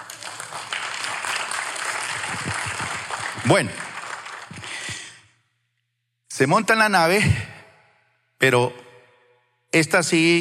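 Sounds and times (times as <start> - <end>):
audience applause: 0.0 - 5.2
speech: 3.4 - 3.8, 6.4 - 7.5, 8.4 - 8.8, 9.7 - 10.3.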